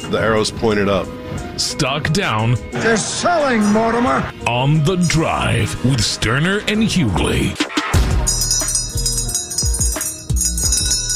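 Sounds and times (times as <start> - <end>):
speech: 0.1 - 8.4
old school bell ringing: 8.2 - 11.1.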